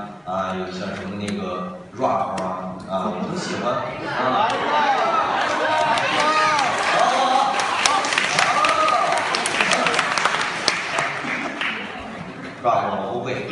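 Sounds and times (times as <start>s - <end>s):
speech: 0.3s - 5.9s, 12.6s - 13.5s
audience applause: 4.5s - 12.4s.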